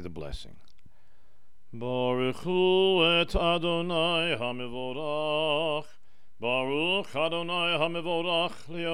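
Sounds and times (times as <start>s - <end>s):
chanting: 1.7s - 8.9s.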